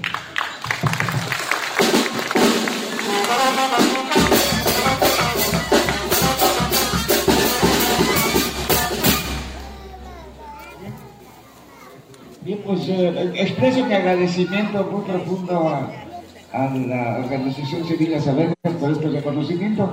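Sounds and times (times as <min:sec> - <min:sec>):
audience applause: 0:00.0 - 0:09.2
speech: 0:12.9 - 0:19.9.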